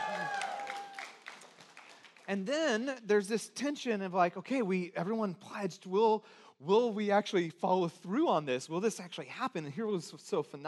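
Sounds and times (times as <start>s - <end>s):
audience cheering and clapping: 0.0s - 2.3s
speech: 2.3s - 10.6s.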